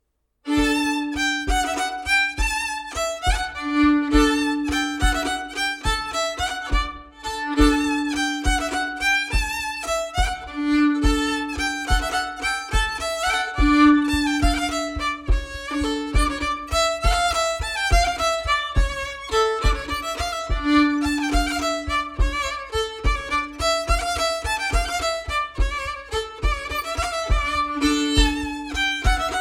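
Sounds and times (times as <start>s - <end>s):
bourree dance tune: 0.5s - 29.3s.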